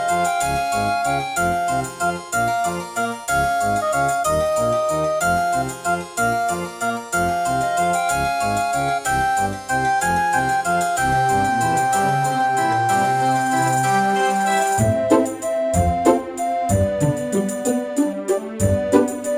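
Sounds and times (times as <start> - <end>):
Yamaha MU2000EX tone generator music in GS mode: 0.0 - 19.3.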